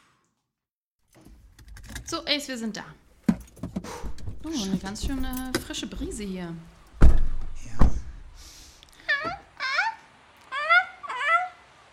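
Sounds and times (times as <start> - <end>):
speech: 2.1 - 3.0, 3.8 - 6.7
seagulls calling: 9.0 - 11.7.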